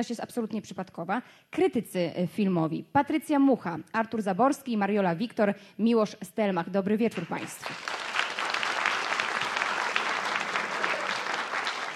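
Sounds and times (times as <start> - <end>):
speech: 0.0 - 8.0
large audience applause: 7.5 - 11.9.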